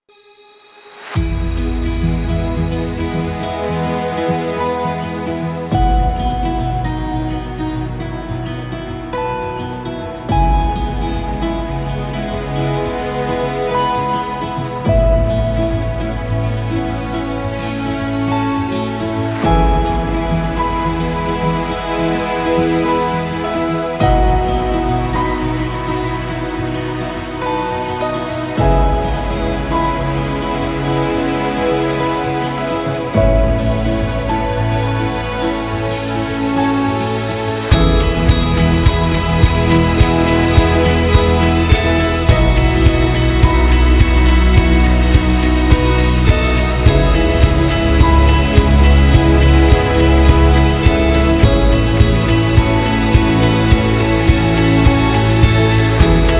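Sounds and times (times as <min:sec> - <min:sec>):
inspirational emotional cinematic wedding music: 0:01.0 - 0:56.3.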